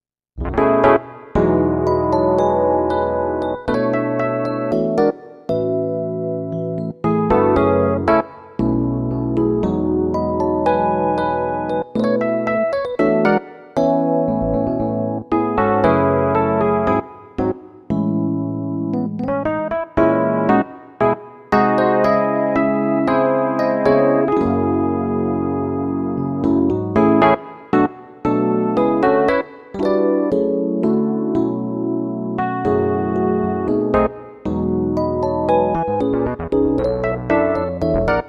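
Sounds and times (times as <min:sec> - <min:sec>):
electric piano: 0:00.4 - 0:38.2.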